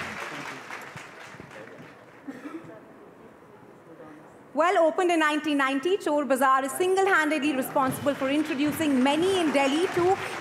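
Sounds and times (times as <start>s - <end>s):
audience applause: 0.0s - 2.2s, 8.0s - 10.3s
speech: 4.6s - 10.3s.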